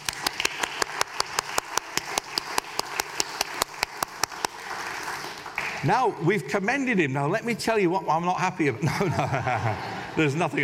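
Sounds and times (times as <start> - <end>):
audience clapping in unison: 0.0 - 6.0
speech: 5.8 - 10.6
laughter: 8.7 - 10.6.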